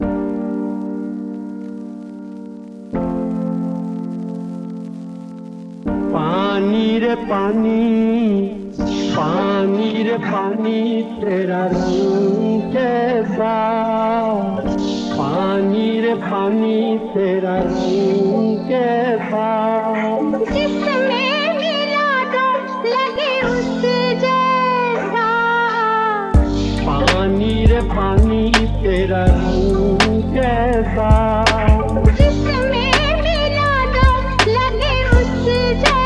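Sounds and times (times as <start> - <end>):
lo-fi flip music: 0.0 - 36.0.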